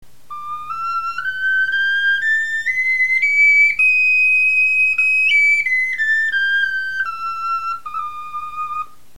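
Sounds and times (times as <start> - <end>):
bone flutes playing a scale: 0.1 - 9.1.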